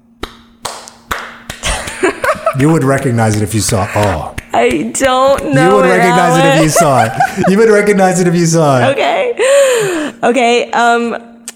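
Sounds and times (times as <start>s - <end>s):
faint steady hum: 0.0s - 11.5s
hand claps: 0.2s - 5.8s
laughter: 1.6s - 4.3s, 5.4s - 9.0s
speech: 2.0s - 11.3s.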